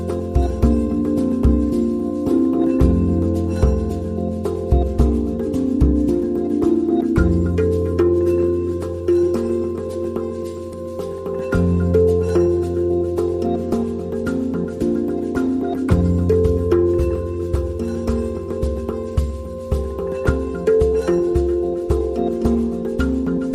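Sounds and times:
hang drum jam: 0:00.0 - 0:23.5.

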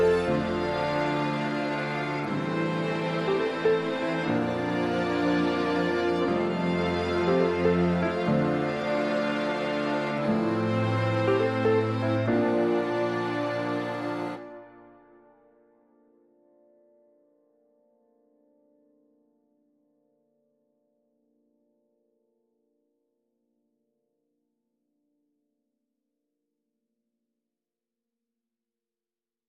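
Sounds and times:
strings: 0:00.0 - 0:15.4.

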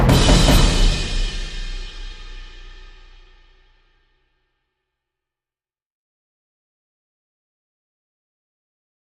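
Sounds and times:
epic film percussion: 0:00.0 - 0:03.9.

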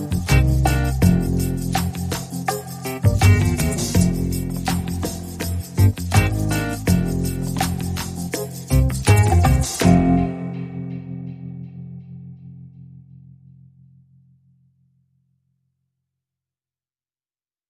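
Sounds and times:
rhythm section playing: 0:00.0 - 0:10.9.

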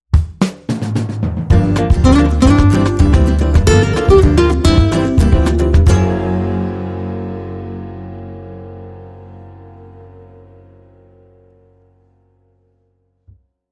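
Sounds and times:
samba music: 0:00.2 - 0:06.5.

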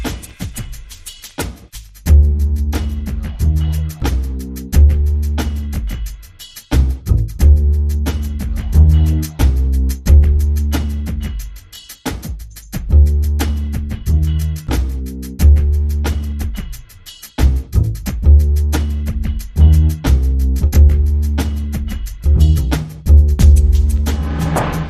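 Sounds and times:
dark jazz bass: 0:02.1 - 0:05.9, 0:06.7 - 0:11.4, 0:12.8 - 0:16.6, 0:17.4 - 0:24.8.

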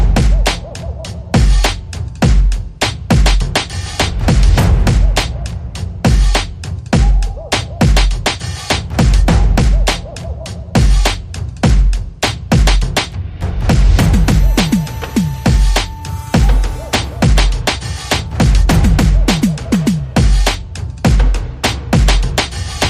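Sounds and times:
drums: 0:00.0 - 0:22.8
sound effects: 0:13.8 - 0:20.0.

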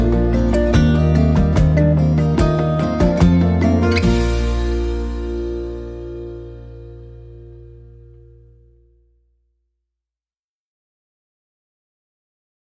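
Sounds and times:
serene strings playing: 0:00.0 - 0:08.5.

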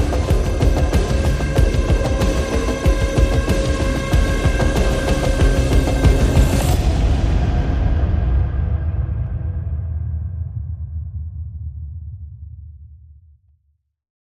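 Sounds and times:
percussion pulses: 0:00.0 - 0:09.8.

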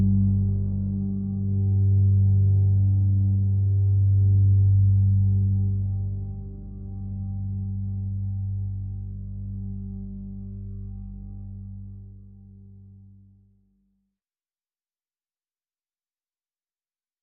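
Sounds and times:
drone on G: 0:00.0 - 0:13.0.

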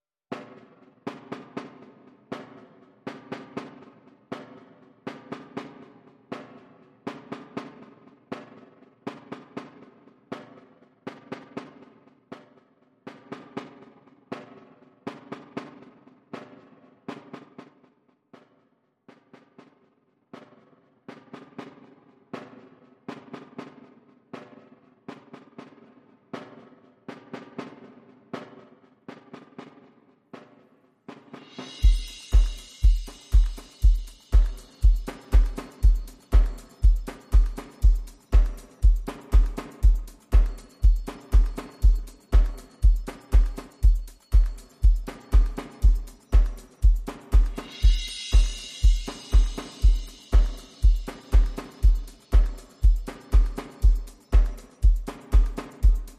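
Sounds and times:
drums: 0:00.3 - 0:56.1.

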